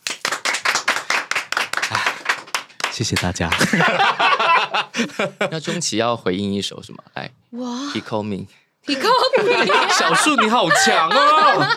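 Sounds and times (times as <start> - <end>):
applause: 0.0 - 3.8
speech: 3.0 - 11.7
laughter: 3.4 - 5.9, 8.9 - 11.7.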